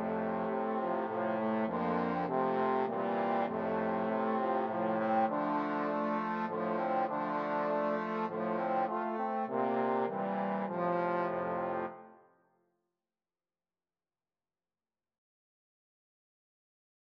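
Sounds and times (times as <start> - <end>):
trombone quartet: 0.0 - 12.0.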